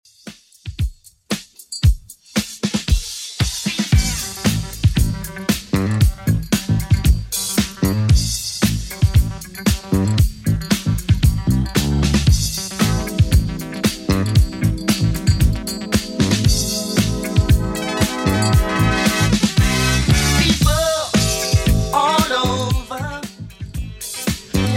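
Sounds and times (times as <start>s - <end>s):
1980s style remix music at 115 bpm: 0.1s - 24.7s.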